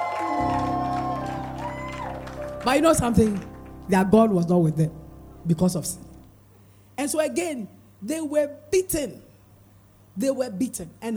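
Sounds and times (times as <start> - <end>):
audience shouting and cheering: 0.0 - 2.6
sustained organ chords: 0.3 - 7.0
speech: 2.6 - 6.1, 7.0 - 9.3, 10.2 - 11.1.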